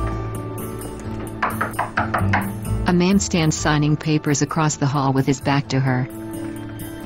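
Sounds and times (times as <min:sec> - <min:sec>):
knocking on a door: 0:01.4 - 0:02.6
speech: 0:02.9 - 0:06.2.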